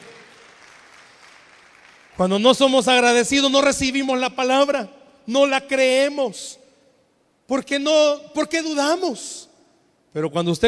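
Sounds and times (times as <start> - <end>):
crowd applause: 0.0 - 2.2
speech: 2.2 - 6.6, 7.5 - 9.5, 10.1 - 10.6.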